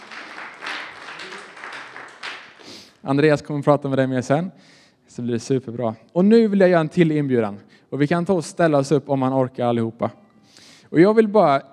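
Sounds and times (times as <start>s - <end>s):
church congregation applause during a service: 0.0s - 2.9s
speech: 3.0s - 10.2s, 10.9s - 11.7s.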